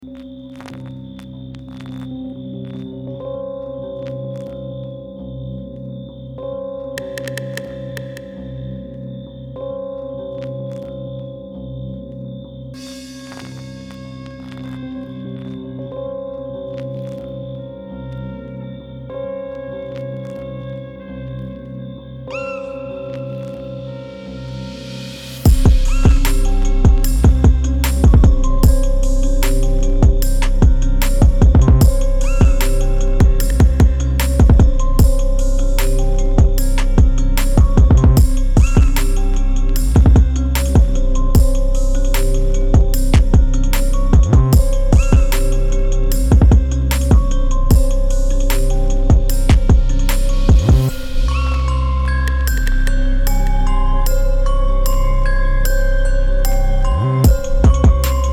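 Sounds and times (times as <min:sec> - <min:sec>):
instrumental music: 0:07.0 - 0:09.0, 0:25.3 - 0:58.3.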